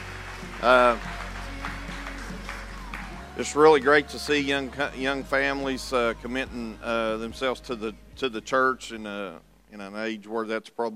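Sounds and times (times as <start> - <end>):
crowd applause: 0.0 - 4.8
voiced cheer or sung tone: 0.0 - 4.9
speech: 0.6 - 1.1, 3.4 - 10.9.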